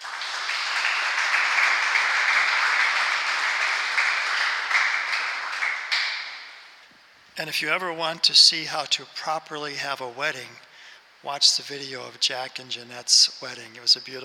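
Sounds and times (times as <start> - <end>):
audience applause welcoming a priest to speak: 0.0 - 6.7
speech: 7.4 - 14.2.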